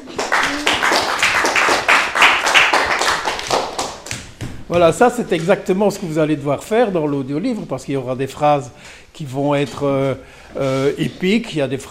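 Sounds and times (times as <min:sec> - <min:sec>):
people applauding: 0:00.0 - 0:04.5
speech: 0:04.7 - 0:11.8.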